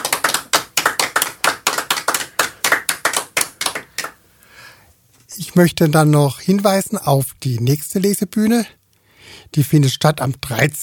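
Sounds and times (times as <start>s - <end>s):
studio guests clapping: 0.0s - 4.2s
speech: 5.4s - 10.8s.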